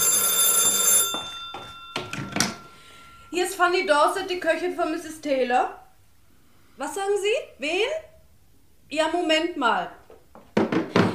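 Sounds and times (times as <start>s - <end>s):
telephone ringing with an electric bell tone: 0.0s - 4.6s
speech: 3.4s - 5.8s, 6.8s - 8.1s, 8.9s - 10.0s.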